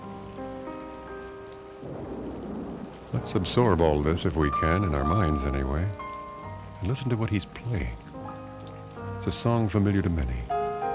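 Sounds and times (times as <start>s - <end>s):
thunderstorm with rain: 1.0s - 5.6s
speech: 3.1s - 6.0s, 6.8s - 8.0s, 9.2s - 10.6s.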